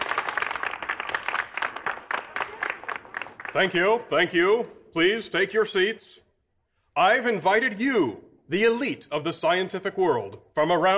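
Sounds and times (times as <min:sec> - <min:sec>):
audience applause greeting a speaker: 0:00.0 - 0:04.1
speech: 0:03.6 - 0:06.2, 0:07.0 - 0:10.9.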